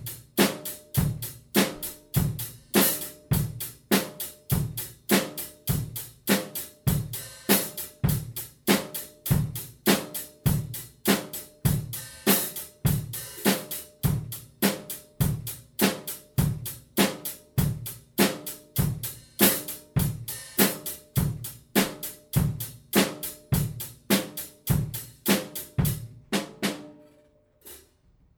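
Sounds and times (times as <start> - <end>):
hi-hat pedal practice: 0.0 - 26.1.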